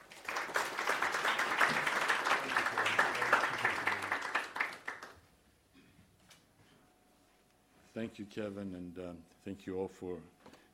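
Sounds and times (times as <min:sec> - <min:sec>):
audience applause welcoming a speaker to the stage: 0:00.0 - 0:05.2
speech: 0:08.0 - 0:10.4.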